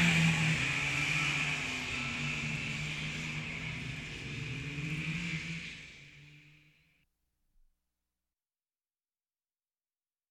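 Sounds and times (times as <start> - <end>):
sport go-karts racing: 0.0 - 6.8.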